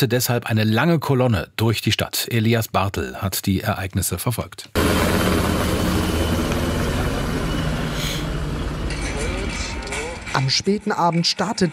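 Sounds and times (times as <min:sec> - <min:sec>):
speech: 0:00.0 - 0:05.8, 0:10.4 - 0:11.7
Bundeswehr and police helicopters circling over the city: 0:04.8 - 0:11.7.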